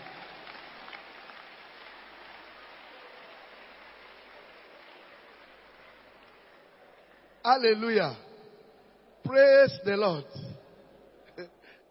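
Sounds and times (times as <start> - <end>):
audience clapping hands: 0.0 - 8.1
speech: 7.4 - 8.2, 9.3 - 10.4.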